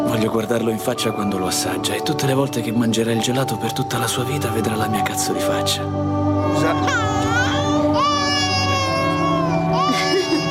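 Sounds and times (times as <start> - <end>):
speech: 0.1 - 7.0
baby crying: 6.3 - 10.5.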